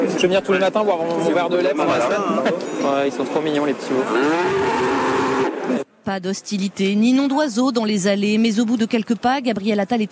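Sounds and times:
speech: 0.2s - 10.0s
dairy cows mooing: 4.0s - 5.6s.

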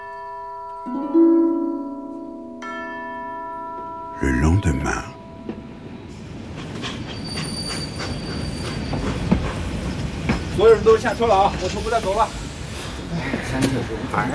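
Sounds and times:
speech: 0.8s - 1.4s, 4.2s - 5.1s, 10.6s - 12.4s, 13.1s - 14.3s
train rolling on rails to Oku: 6.0s - 14.3s
train wheels squealing: 6.6s - 10.6s.

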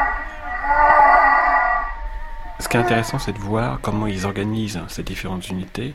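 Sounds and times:
humpback whale moaning: 0.0s - 3.9s
speech: 2.6s - 5.9s.

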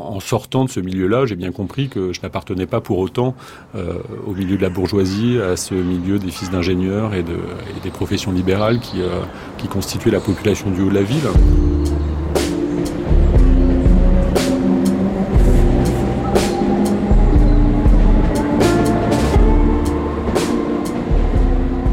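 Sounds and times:
speech: 0.2s - 12.1s
low rumble at Saint-Cloud train station: 11.4s - 21.9s.

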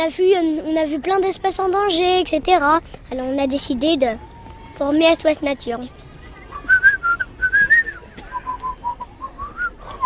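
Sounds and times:
speech: 0.0s - 6.0s
person whistling a lively tune: 6.4s - 10.0s.

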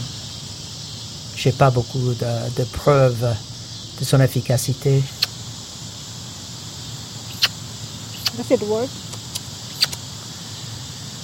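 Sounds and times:
steady hiss: 0.0s - 11.2s
speech: 1.4s - 5.2s, 8.4s - 9.0s
handheld sparrow call chirping: 7.3s - 8.4s.

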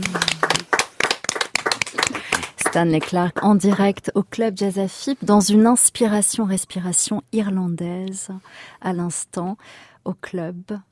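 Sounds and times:
audience applause at a live jazz club concert: 0.0s - 3.2s
speech: 2.8s - 10.9s.

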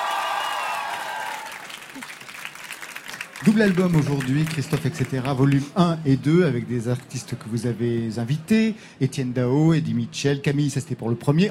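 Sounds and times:
audience applause: 0.0s - 5.8s
speech: 3.4s - 11.5s.

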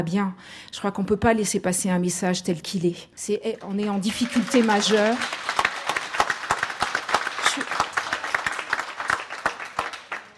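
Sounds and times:
speech: 0.0s - 5.6s
audience applause: 3.6s - 10.3s.

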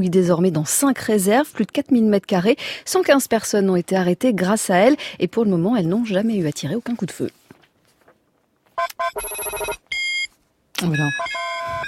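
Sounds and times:
speech: 0.0s - 7.4s, 8.8s - 9.9s, 10.8s - 11.8s
facial recognition scanner beep in Beijing metro: 8.8s - 11.8s.

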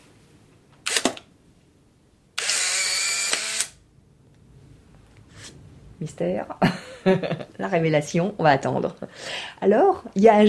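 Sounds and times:
instant camera shutter click: 0.8s - 1.2s, 2.4s - 3.8s
instant camera motorised whir: 2.4s - 3.8s
speech: 6.0s - 10.4s
laughter: 6.6s - 7.6s.

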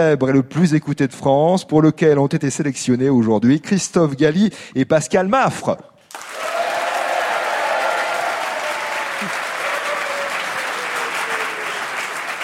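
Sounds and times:
speech: 0.0s - 6.5s
audience applause: 6.1s - 12.4s.

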